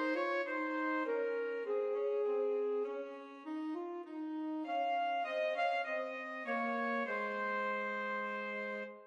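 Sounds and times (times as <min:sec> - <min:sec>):
alto saxophone in duet: 0:00.0 - 0:09.0.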